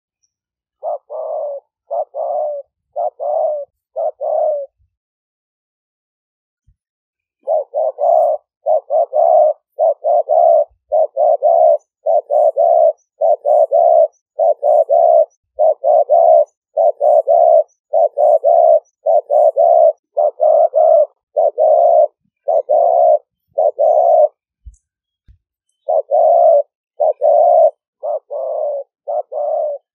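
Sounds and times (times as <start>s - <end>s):
spotted dove cooing: 0.7s - 4.9s, 7.4s - 24.7s, 25.8s - 29.9s.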